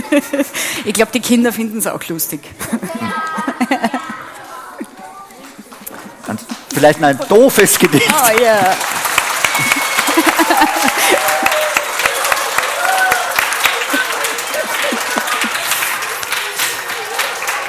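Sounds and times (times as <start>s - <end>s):
laughter: 0.0s - 0.7s, 2.6s - 6.5s, 7.5s - 8.8s, 9.4s - 17.6s
speech: 0.1s - 3.2s, 6.8s - 9.0s
audience applause: 5.4s - 17.6s.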